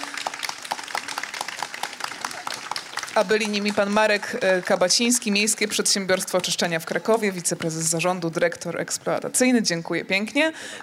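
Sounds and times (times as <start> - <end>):
audience applause for panel guests: 0.0 - 7.0
speech: 3.2 - 10.8.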